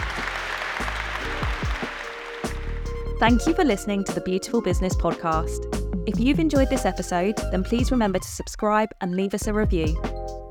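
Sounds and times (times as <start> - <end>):
audience applause for a panel: 0.0 - 3.1
speech: 3.2 - 10.1.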